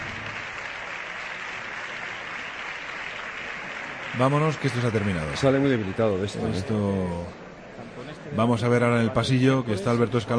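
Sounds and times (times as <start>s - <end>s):
parliamentary group applause: 0.0s - 6.7s
speech: 4.2s - 7.4s, 8.3s - 10.3s.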